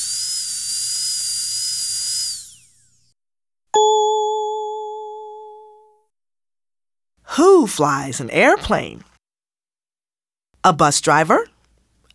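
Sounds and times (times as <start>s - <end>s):
dentist's drill whirring: 0.0s - 3.1s
bright bell ding: 3.8s - 5.8s
speech: 7.6s - 9.1s, 10.6s - 11.5s.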